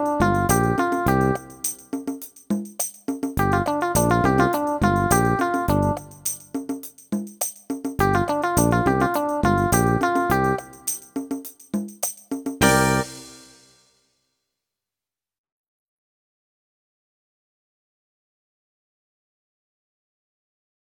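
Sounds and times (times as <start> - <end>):
drum paradiddle: 0.0 - 13.8.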